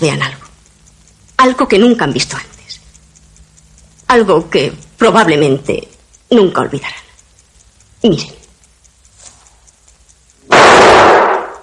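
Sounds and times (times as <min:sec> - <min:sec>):
speech: 0:00.0 - 0:00.3, 0:01.4 - 0:02.5, 0:04.1 - 0:07.0, 0:08.0 - 0:08.4
gunshot: 0:10.5 - 0:11.6.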